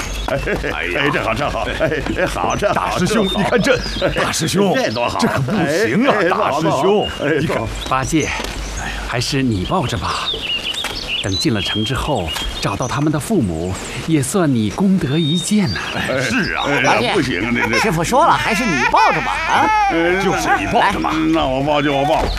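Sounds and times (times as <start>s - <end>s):
laughter: 0.0s - 8.3s, 15.6s - 22.3s
voices talking: 0.0s - 10.6s, 11.2s - 22.3s
baby crying: 16.0s - 21.3s.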